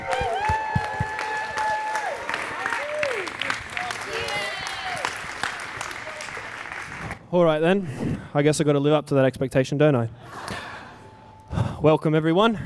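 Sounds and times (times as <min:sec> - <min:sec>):
audience applauding and cheering at a church gathering: 0:00.0 - 0:07.2
speech: 0:07.3 - 0:10.6, 0:11.8 - 0:12.6.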